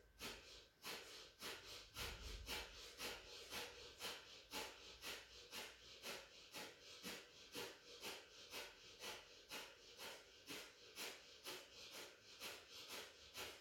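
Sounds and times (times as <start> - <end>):
slow breathing in and out through the nostrils during a guided breathing exercise: 0.0 - 13.5.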